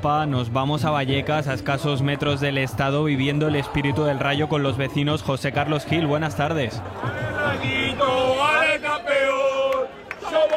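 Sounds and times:
speech: 0.0s - 8.6s
football fans chanting: 1.5s - 10.5s.

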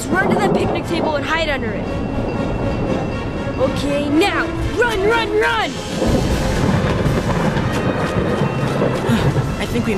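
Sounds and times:
loud sustained thunder during a lightning storm: 0.0s - 3.4s, 5.7s - 9.9s
speech: 0.1s - 3.0s, 3.6s - 6.5s, 9.1s - 9.9s.

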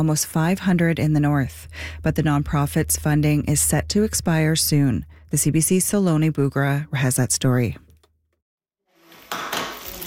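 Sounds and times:
speech: 0.0s - 7.8s
burger cooking in a pan: 9.0s - 10.0s.

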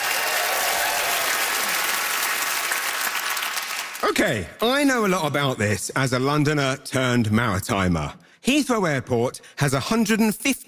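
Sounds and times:
audience applause greeting a comedian at a stand-up show: 0.0s - 4.1s
speech: 4.0s - 10.6s.

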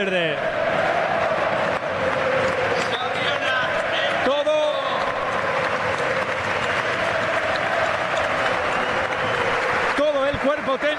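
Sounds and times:
speech: 0.0s - 0.5s
large stadium crowd applauding: 0.0s - 10.9s.

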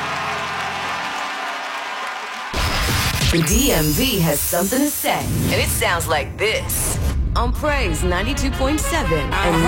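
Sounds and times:
audience clapping hands: 0.0s - 3.0s
speech: 3.3s - 9.6s.

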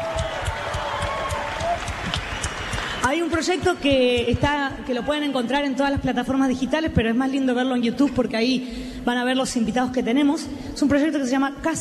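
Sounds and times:
audience applause: 0.0s - 3.9s
speech: 3.0s - 11.7s.

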